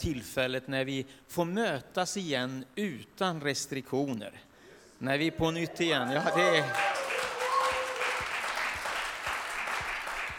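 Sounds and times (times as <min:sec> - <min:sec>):
speech: 0:00.0 - 0:06.9
audience applause: 0:06.0 - 0:10.3.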